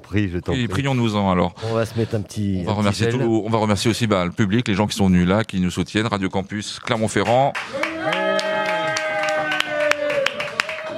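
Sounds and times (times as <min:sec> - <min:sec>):
speech: 0:00.1 - 0:08.2
small audience clapping weakly: 0:06.9 - 0:10.9.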